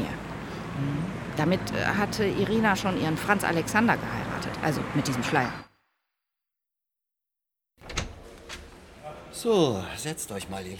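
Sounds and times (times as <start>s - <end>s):
speech: 1.4s - 5.7s, 9.4s - 10.7s
door being closed: 7.8s - 8.8s.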